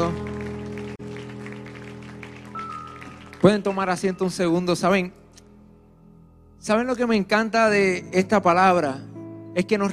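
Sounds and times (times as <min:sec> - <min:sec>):
speech: 0:00.0 - 0:00.2, 0:03.4 - 0:05.2, 0:06.6 - 0:09.9
large crowd clapping: 0:00.0 - 0:04.6
sustained keyboard chords: 0:00.0 - 0:09.9.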